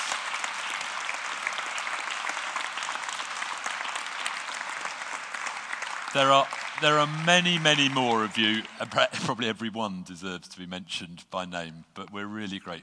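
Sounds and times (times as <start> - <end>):
audience round of applause: 0.0 - 9.4
speech: 6.2 - 12.8.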